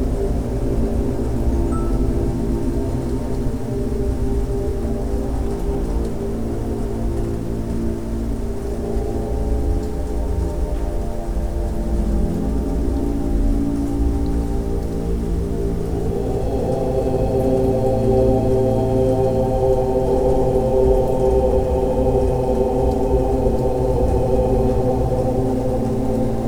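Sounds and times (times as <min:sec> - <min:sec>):
rain: 0:00.0 - 0:26.4
om mantra chanting for meditation: 0:16.0 - 0:26.4.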